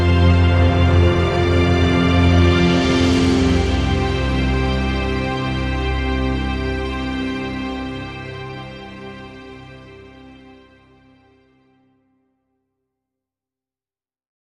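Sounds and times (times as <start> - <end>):
percussion: 0.0 - 9.2
strings: 0.0 - 11.8.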